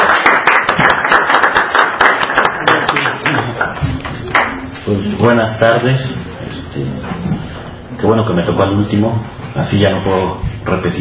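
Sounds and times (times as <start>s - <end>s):
audience applause: 0.0s - 4.6s
speech: 5.2s - 6.2s, 8.1s - 11.0s.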